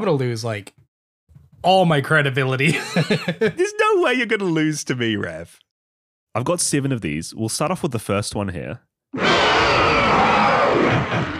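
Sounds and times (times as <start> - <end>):
speech: 0.0 - 0.8, 1.6 - 5.7, 6.3 - 11.3
laughter: 2.6 - 4.0
monster roar sound effect: 9.2 - 11.3.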